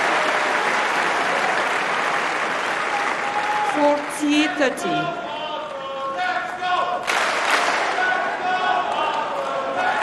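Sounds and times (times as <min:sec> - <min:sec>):
fight crowd cheering and clapping: 0:00.0 - 0:10.0
fight crowd chanting a fighter's name: 0:03.2 - 0:10.0
speech: 0:04.2 - 0:05.2.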